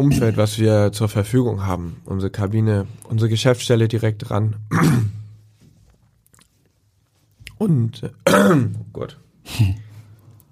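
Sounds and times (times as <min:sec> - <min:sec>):
speech: 0:00.0 - 0:05.2, 0:07.6 - 0:09.8
person taking a sip of water: 0:05.9 - 0:07.6.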